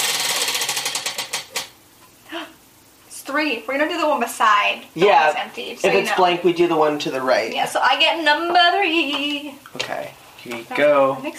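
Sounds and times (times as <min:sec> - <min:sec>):
game spinner spinning and clicking: 0:00.0 - 0:01.7
speech: 0:03.3 - 0:11.3.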